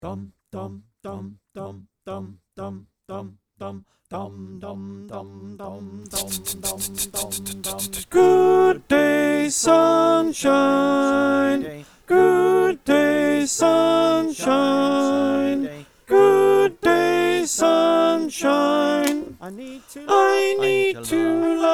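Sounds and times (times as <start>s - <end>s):
alto choir singing: 8.0s - 21.7s.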